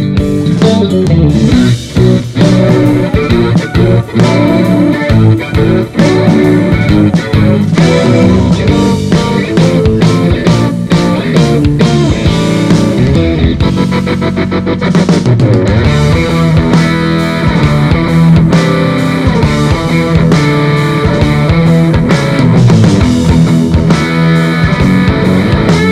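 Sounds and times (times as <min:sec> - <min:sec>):
65 Stratocaster electric guitar through G12H speaker: 0:00.0 - 0:25.8.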